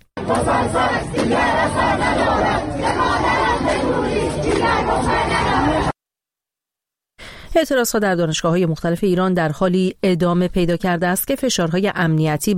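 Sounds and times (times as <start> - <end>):
students protesting at Babol Noshirvani University shouting and chanting: 0.2 - 6.0
speech: 0.3 - 5.8, 7.6 - 12.5.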